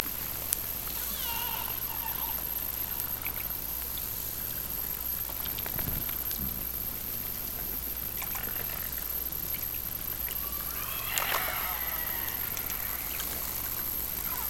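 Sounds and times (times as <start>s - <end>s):
Orcasound hydrophone underwater sound: 0.0s - 14.4s.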